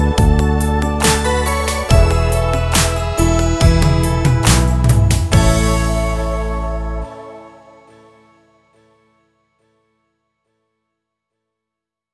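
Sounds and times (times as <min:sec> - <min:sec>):
ballad: 0:00.0 - 0:08.4.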